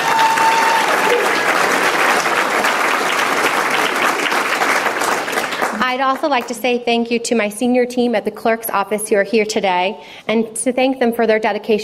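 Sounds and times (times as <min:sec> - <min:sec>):
audience applause: 0:00.0 - 0:05.9
speech: 0:06.0 - 0:11.8.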